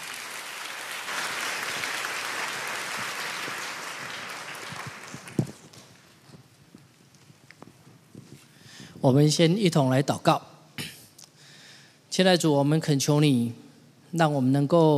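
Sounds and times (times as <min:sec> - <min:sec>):
audience applause: 0:00.0 - 0:06.2
speech: 0:09.0 - 0:10.5, 0:12.2 - 0:14.9.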